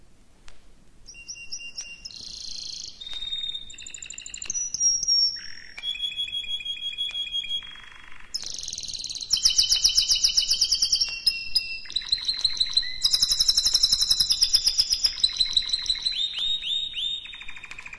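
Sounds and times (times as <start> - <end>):
canary singing: 1.1 - 17.9.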